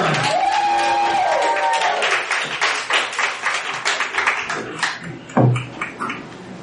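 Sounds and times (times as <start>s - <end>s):
loud whoops: 0.0s - 2.3s
spoken-word poetry night audience clapping and cheering for a performer: 0.0s - 6.3s.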